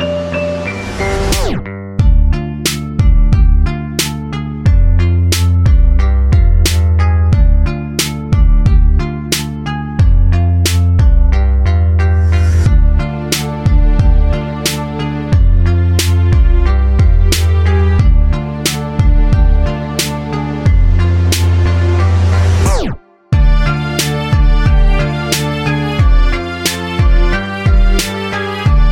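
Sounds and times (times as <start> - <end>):
freestyle rap beat: 0.2 - 11.5, 12.3 - 28.8.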